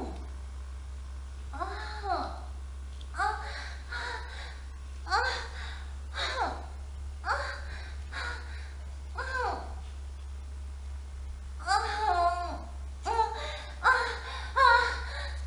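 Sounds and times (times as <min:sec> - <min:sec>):
young wife moaning wildly: 0:01.5 - 0:02.6, 0:03.2 - 0:09.8, 0:11.6 - 0:15.4.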